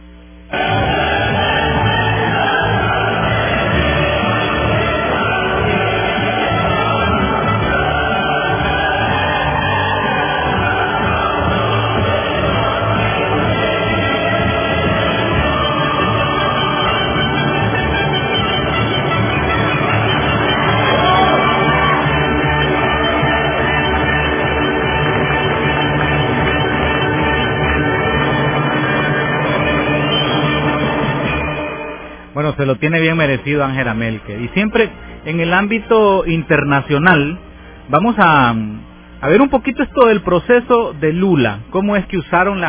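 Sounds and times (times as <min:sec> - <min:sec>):
audience applause and cheering: 0:00.6 - 0:32.0
speech: 0:32.8 - 0:42.6.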